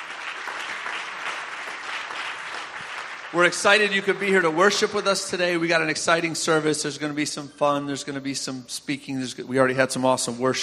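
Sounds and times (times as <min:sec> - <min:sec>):
church congregation clapping for mothers at a Mother's Day service: 0:00.0 - 0:05.6
speech: 0:03.3 - 0:10.6.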